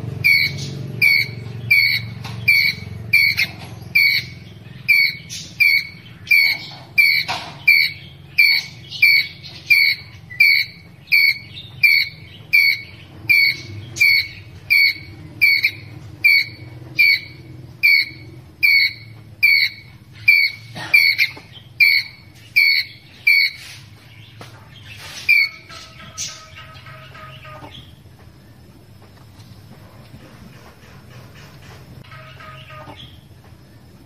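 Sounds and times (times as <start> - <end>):
ground squirrel chirping: 0.2 - 23.8, 25.0 - 28.1.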